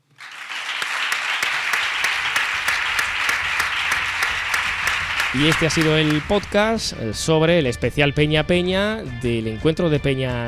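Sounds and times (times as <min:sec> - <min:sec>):
audience applause: 0:00.0 - 0:07.0
speech: 0:05.3 - 0:10.4.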